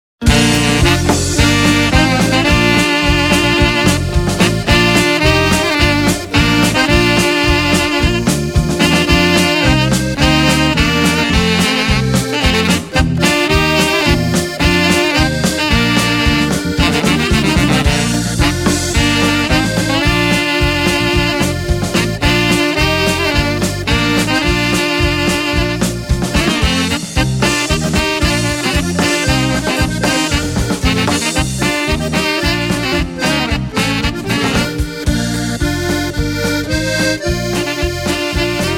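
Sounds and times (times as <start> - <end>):
polka music: 0.2 - 38.7.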